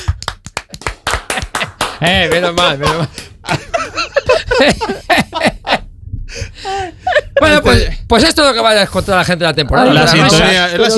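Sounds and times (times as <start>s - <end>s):
applause: 0.1s - 2.8s
laughter: 1.2s - 5.9s, 6.7s - 7.8s
speech: 2.0s - 3.6s, 4.3s - 5.5s, 7.4s - 10.9s.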